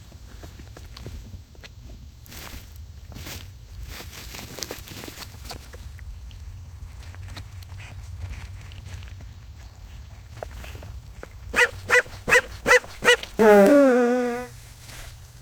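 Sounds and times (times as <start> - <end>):
deer call: 11.6 - 14.5.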